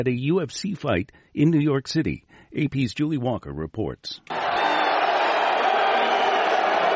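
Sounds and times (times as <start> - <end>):
speech: 0.0 - 4.8
arena crowd booing: 4.3 - 6.9.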